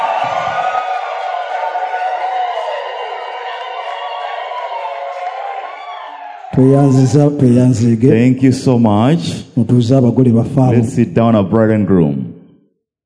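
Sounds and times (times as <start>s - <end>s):
audience yelling: 0.0s - 8.3s
speech: 6.6s - 12.2s.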